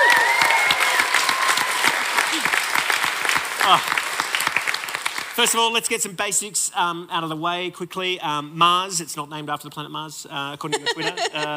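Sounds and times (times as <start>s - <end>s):
cheers: 0.0s - 4.9s
audience clapping: 0.0s - 5.8s
speech: 3.7s - 3.9s, 5.4s - 11.5s
laughter: 10.6s - 11.5s.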